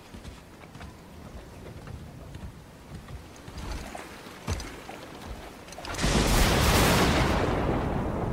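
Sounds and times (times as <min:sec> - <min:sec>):
thunder rumbling in a storm: 0:05.9 - 0:08.3.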